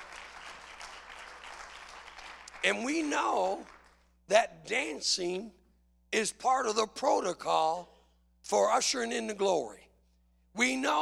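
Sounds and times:
audience applause: 0.0s - 2.6s
speech: 2.6s - 9.8s, 10.6s - 11.0s.

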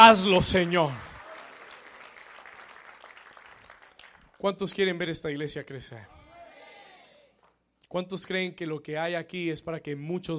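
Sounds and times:
speech: 0.0s - 1.1s, 4.4s - 6.2s, 7.9s - 10.3s
audience applause: 0.1s - 4.2s.

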